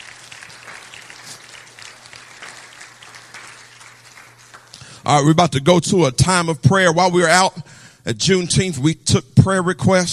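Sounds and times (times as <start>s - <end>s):
audience clapping hands: 0.0s - 5.2s
speech: 5.1s - 10.1s.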